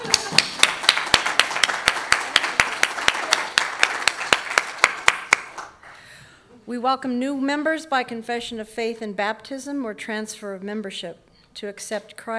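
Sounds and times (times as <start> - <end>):
audience applause for a birthday: 0.0 - 5.8
speech: 6.7 - 12.3.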